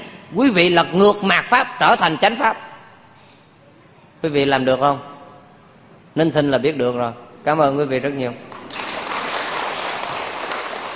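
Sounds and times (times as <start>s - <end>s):
speech: 0.3s - 2.7s, 4.2s - 5.1s, 6.2s - 8.5s
audience clapping after a Buddhist dharma talk: 8.5s - 10.9s.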